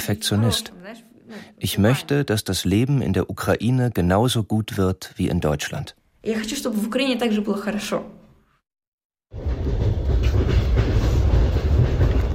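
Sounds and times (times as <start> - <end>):
speech: 0.0 - 8.2
moving train carriage rumble and rattle heard from inside: 9.3 - 12.3.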